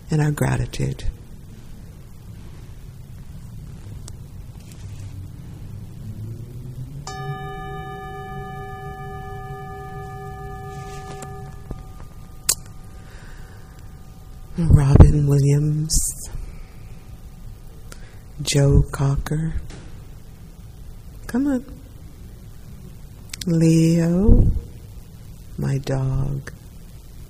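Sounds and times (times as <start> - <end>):
constant low rumbling background: 0.0 - 21.3
speech: 0.1 - 1.2, 14.6 - 16.2, 18.5 - 19.8, 21.3 - 21.8, 23.4 - 24.6, 25.6 - 26.6
bell ringing: 7.1 - 15.4.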